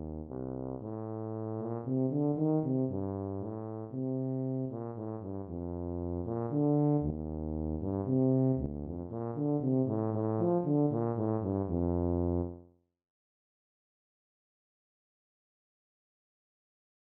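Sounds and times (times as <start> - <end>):
tuba: 0.0 - 12.7.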